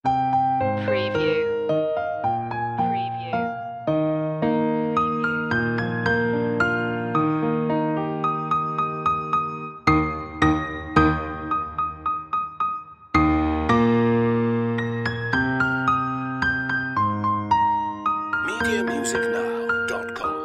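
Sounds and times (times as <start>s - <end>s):
piano: 0.0s - 20.4s.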